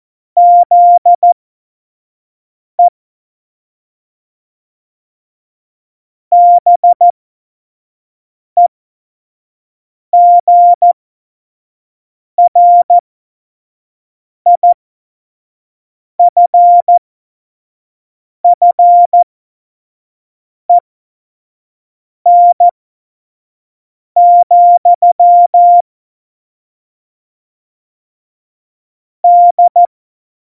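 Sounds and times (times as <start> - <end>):
CW Morse code at tempo 70: 0.4 - 1.4, 6.3 - 7.0, 10.2 - 11.0, 12.4 - 12.9, 16.2 - 17.0, 18.6 - 19.2, 22.3 - 22.7, 24.2 - 25.8, 29.2 - 29.9.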